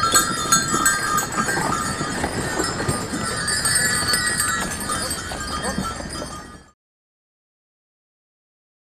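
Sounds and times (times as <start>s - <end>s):
horse-drawn sleigh: 0.0s - 6.8s.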